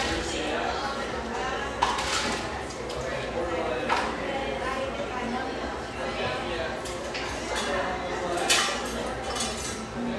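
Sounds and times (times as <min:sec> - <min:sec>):
overlapping conversation in a busy café: 0:00.0 - 0:10.1
dishes and cutlery clinking in a café: 0:01.8 - 0:03.0, 0:06.8 - 0:10.0.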